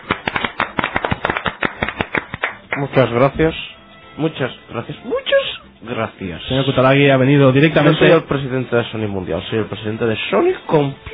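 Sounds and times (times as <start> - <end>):
audience applause: 0.0 - 2.9
speech: 2.8 - 11.1.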